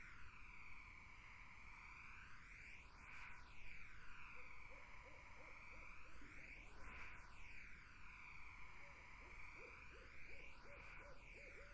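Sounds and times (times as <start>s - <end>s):
continuous high insect drone: 0.0s - 11.7s
barred owl hooting: 8.8s - 11.7s.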